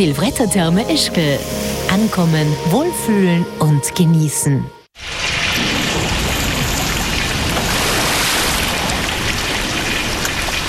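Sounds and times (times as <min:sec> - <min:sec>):
speech: 0:00.0 - 0:04.8
water pouring into a flooded cellar: 0:05.0 - 0:10.6.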